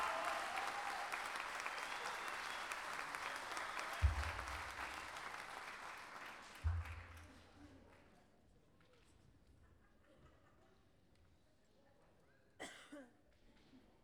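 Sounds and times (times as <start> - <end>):
audience applause for a poet at an international gala of improvised folk singers: 0.0 - 7.4.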